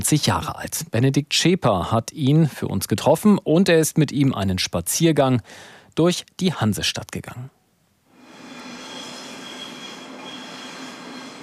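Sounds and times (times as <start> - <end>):
speech: 0.1 - 7.6
trains rumbling over rails in station: 8.5 - 11.4.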